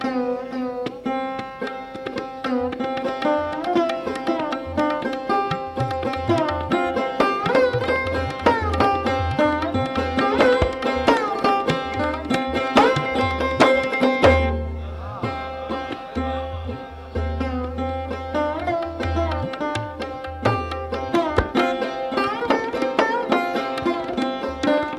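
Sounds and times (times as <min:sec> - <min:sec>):
sarod playing a raga: 0:00.0 - 0:24.9.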